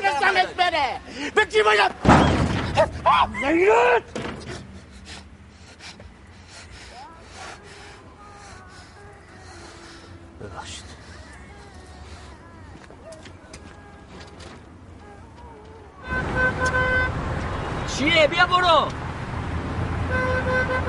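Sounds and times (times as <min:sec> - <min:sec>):
loud traffic rumble: 0:00.0 - 0:20.8
speech: 0:00.3 - 0:04.2, 0:18.0 - 0:19.0
car horns honking in traffic: 0:16.0 - 0:18.6, 0:20.0 - 0:20.8.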